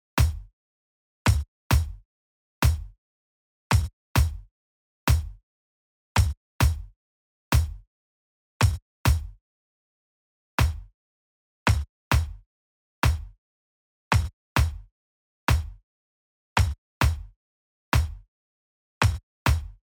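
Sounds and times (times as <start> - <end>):
kick drum: 0.2 - 0.5, 1.3 - 2.0, 2.6 - 3.0, 3.7 - 4.5, 5.1 - 5.4, 6.2 - 6.9, 7.6 - 7.8, 8.6 - 9.4, 10.6 - 10.9, 11.7 - 12.4, 13.0 - 13.4, 14.1 - 14.9, 15.5 - 15.8, 16.6 - 17.4, 18.0 - 18.3, 19.0 - 19.8.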